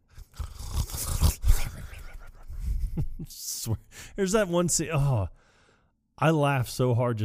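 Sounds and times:
loud rumbling snoring: 0.2s - 2.0s
speech: 3.0s - 5.4s, 6.2s - 7.2s.

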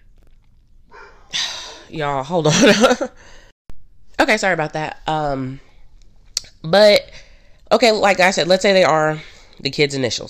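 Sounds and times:
dog barking: 0.9s - 1.8s
speech: 1.9s - 3.4s, 4.2s - 5.7s, 6.6s - 7.1s, 7.7s - 10.2s.

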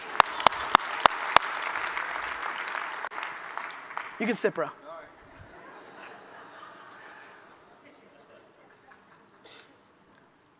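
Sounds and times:
audience clapping in unison: 0.0s - 4.8s
crowd noise: 0.0s - 10.0s
speech: 4.2s - 4.8s
laughter: 5.3s - 9.4s.

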